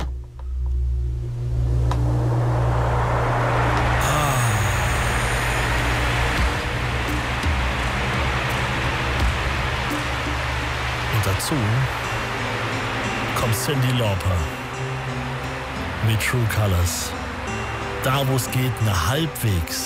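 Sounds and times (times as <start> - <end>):
electric fan running: 0.0 - 19.8
speech: 13.6 - 15.2, 16.1 - 17.3, 18.0 - 19.8.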